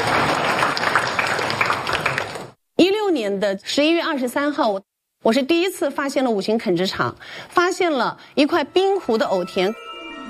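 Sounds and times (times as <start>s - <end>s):
audience applause: 0.0s - 2.6s
speech: 3.4s - 9.9s.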